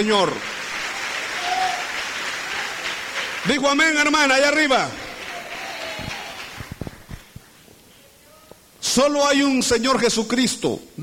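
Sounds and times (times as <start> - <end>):
speech: 0.0 - 0.6, 3.4 - 5.0, 9.0 - 11.0
audience applauding: 0.0 - 7.6.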